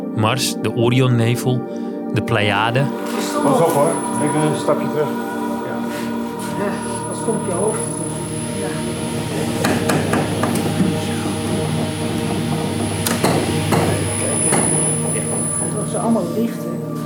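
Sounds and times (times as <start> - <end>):
speech: 0.2 - 5.3, 6.6 - 8.0, 15.9 - 16.8
motorized observatory dome and telescope moving: 7.0 - 16.1.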